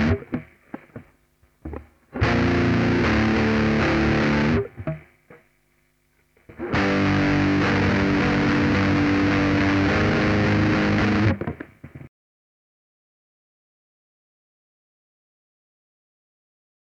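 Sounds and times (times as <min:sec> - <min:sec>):
saturated guitar: 0:00.0 - 0:05.5, 0:06.4 - 0:12.1.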